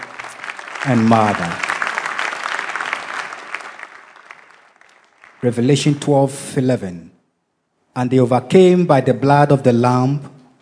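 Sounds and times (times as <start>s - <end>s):
audience clapping: 0.0s - 6.2s
speech: 0.8s - 1.7s, 5.4s - 7.1s, 8.0s - 10.3s.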